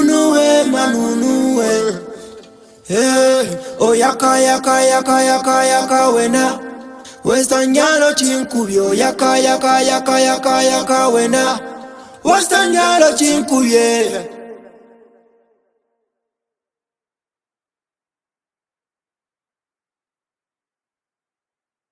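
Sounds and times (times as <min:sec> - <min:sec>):
person singing: 0:00.0 - 0:15.0.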